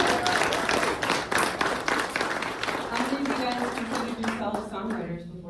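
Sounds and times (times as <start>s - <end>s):
group audience clapping for songwriters in a music program: 0.0s - 5.1s.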